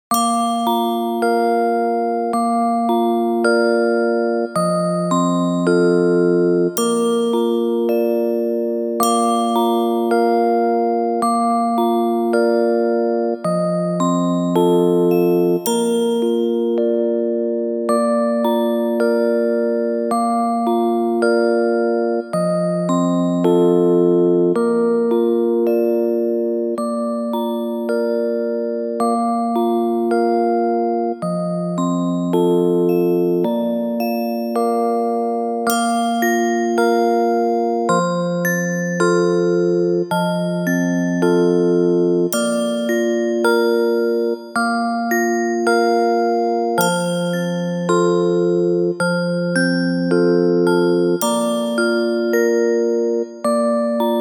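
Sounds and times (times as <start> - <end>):
lullaby music: 0.1 - 54.1.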